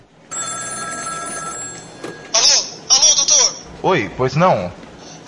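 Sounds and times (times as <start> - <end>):
telephone bell ringing at a doctor's home: 0.3 - 2.6
speech: 3.8 - 4.8.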